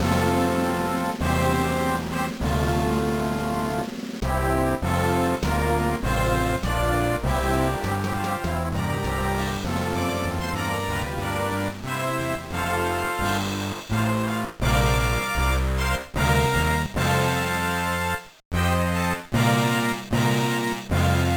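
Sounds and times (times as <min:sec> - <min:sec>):
background music: 0:00.0 - 0:21.3.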